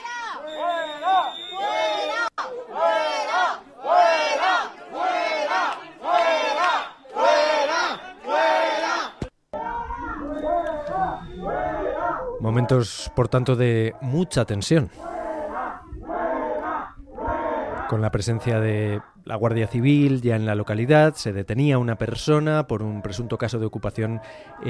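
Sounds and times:
crowd shouting at squatters: 0.0s - 14.3s, 15.0s - 19.2s
speech: 12.4s - 15.1s, 17.9s - 24.6s.

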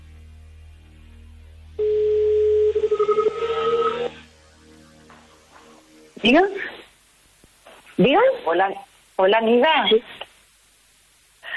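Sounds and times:
telephone tone after dialing: 1.8s - 4.2s
speech: 6.2s - 6.7s, 8.0s - 10.2s.

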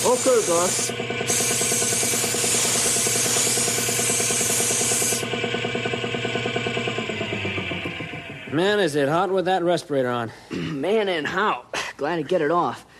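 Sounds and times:
speech: 0.0s - 1.7s, 8.5s - 12.9s
paint gun spray painting hiss: 0.0s - 5.3s
pulsing motor hum: 0.0s - 9.4s.

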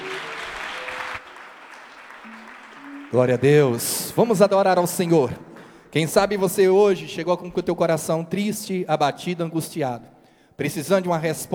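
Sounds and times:
church congregation applauding during a worship service: 0.0s - 8.1s
speech: 3.1s - 11.5s.

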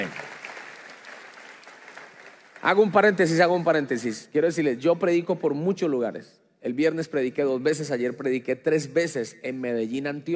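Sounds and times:
congregation applause in a church: 0.0s - 4.0s
speech: 2.6s - 10.3s.

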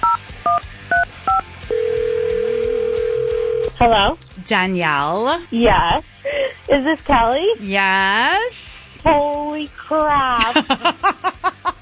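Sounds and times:
steady unbroken phone line tone: 1.3s - 3.8s
speech: 3.8s - 11.4s
laughter: 10.4s - 11.7s.

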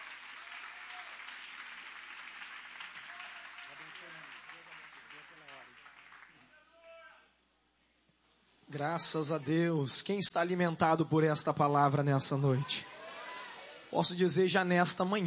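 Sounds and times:
audience applause: 0.0s - 6.6s
speech: 8.7s - 12.9s, 13.9s - 15.2s.

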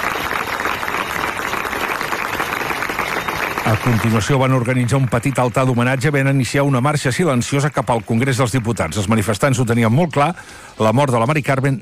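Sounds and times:
crowd applauding at an assembly: 0.0s - 10.1s
speech: 3.6s - 11.8s.

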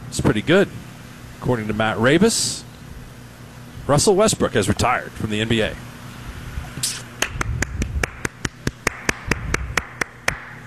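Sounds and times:
speech: 0.2s - 0.8s, 1.4s - 2.7s, 3.9s - 5.9s
sharp crisp hand claps: 7.2s - 10.6s.

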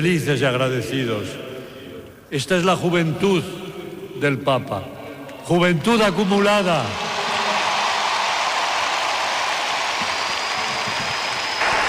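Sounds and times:
speech: 0.0s - 1.5s, 2.3s - 3.6s, 4.2s - 7.0s
stadium crowd applauding: 6.6s - 11.8s.

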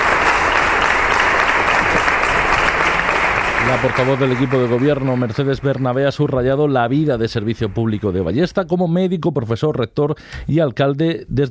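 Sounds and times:
applause by the whole corporación: 0.0s - 8.4s
speech: 3.7s - 11.5s.

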